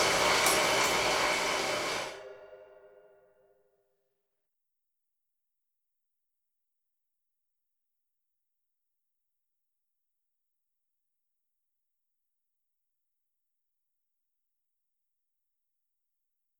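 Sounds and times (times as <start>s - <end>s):
rain on metal: 0.0s - 2.1s.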